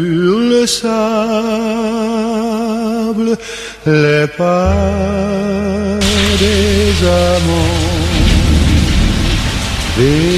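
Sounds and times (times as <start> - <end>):
speech: 0.0 - 2.2, 3.1 - 8.0, 10.0 - 10.3
brief rising tonal sound: 4.7 - 9.2
steady hissing rain: 6.0 - 10.3
thunder rumbling during a rainstorm: 6.0 - 10.3.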